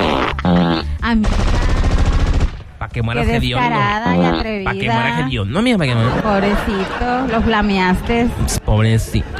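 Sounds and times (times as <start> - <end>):
laughter: 0.2 - 1.0, 3.4 - 9.3
machine-gun sound effect set off by a live-stream gift: 1.2 - 2.6
speech: 3.0 - 9.3.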